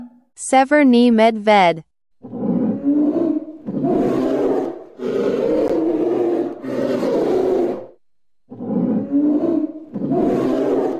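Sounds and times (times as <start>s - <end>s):
speech: 0.5s - 1.9s
tiger roaring: 2.2s - 8.0s, 8.5s - 10.9s.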